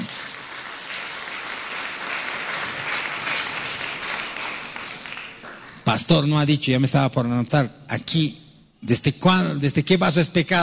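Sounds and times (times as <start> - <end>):
audience applause: 0.0 - 5.8
speech: 5.9 - 10.6.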